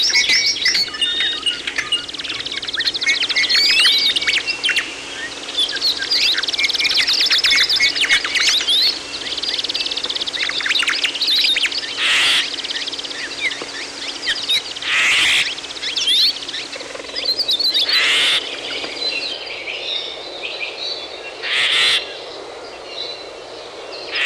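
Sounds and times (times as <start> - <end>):
bird chorus chirping: 0.0 - 24.2.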